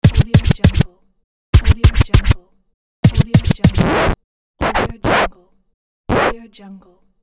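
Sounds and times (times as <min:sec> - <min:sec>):
DJ scratching: 0:00.0 - 0:00.9, 0:01.6 - 0:02.4, 0:03.0 - 0:05.3, 0:06.1 - 0:06.4.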